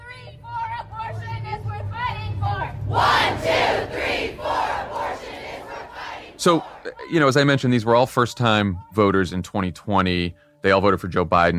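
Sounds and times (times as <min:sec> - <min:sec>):
rally crowd chanting: 0:02.8 - 0:07.3
speech: 0:06.4 - 0:11.5.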